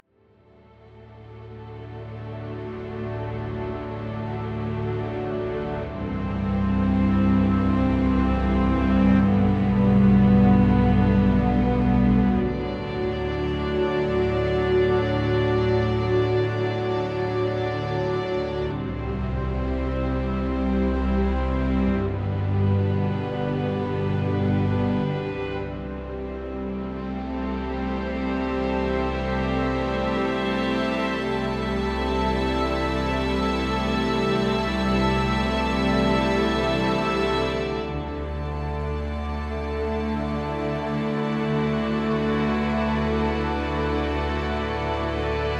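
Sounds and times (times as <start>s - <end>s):
strings playing: 0.5s - 45.5s.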